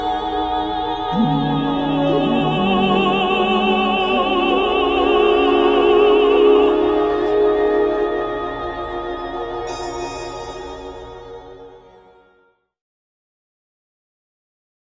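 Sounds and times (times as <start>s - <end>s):
female choir singing: 0.0s - 11.8s.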